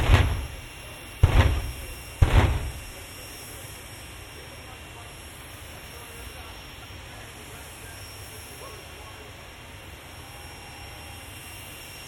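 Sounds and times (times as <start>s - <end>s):
jet car at Santa Pod: 0.0s - 3.3s.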